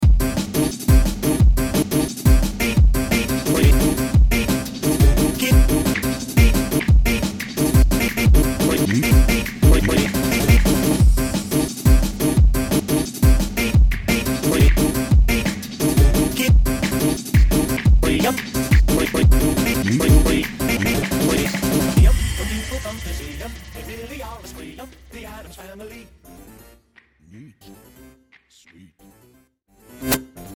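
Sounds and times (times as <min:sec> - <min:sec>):
drum and bass music: 0:00.0 - 0:26.6.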